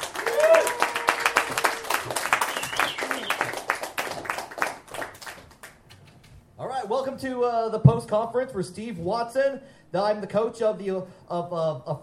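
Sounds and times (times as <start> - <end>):
audience clapping for a comedian at a comedy show: 0.0 - 6.0
speech: 7.2 - 12.0.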